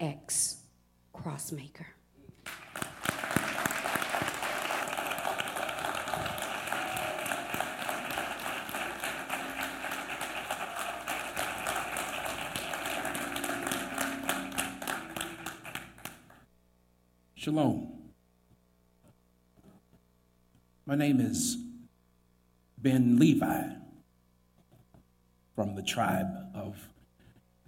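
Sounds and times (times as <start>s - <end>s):
speech: 0.0s - 0.6s, 1.2s - 2.0s, 17.5s - 17.9s, 20.9s - 21.6s, 22.8s - 23.8s, 25.8s - 27.0s
church congregation clapping to welcome a guest: 2.4s - 16.5s.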